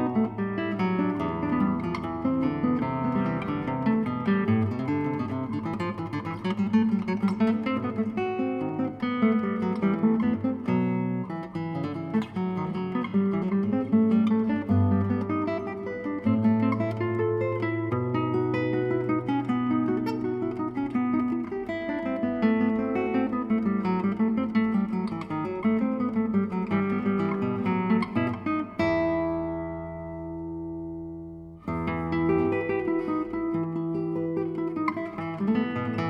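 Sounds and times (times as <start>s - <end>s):
guitar playing: 0.0s - 36.0s.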